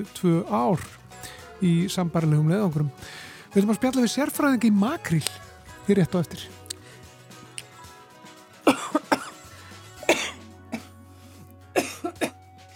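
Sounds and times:
speech: 0.0 - 6.6
man coughing after choking mid-sentence: 8.7 - 9.4, 10.0 - 10.9, 11.8 - 12.4.

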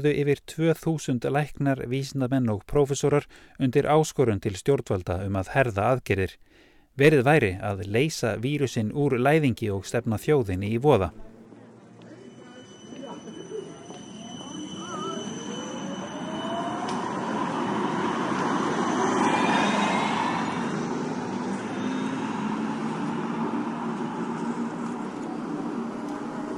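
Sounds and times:
speech: 0.0 - 11.3
tram driving past Liseberg: 12.1 - 26.5.

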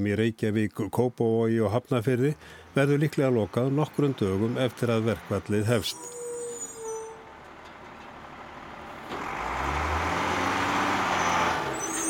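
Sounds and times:
speech: 0.0 - 6.2
garbage truck collecting household waste: 2.0 - 12.0.

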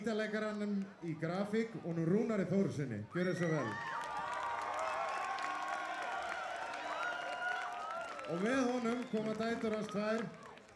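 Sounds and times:
speech: 0.0 - 4.0, 8.3 - 10.4
shouts and high whoops: 3.2 - 9.5
crowd clapping: 3.6 - 10.7.

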